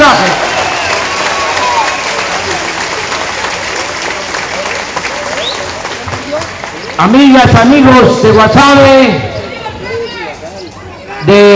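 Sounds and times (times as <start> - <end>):
crowd applause: 0.0 - 8.0
speech: 7.0 - 9.3, 11.2 - 11.5.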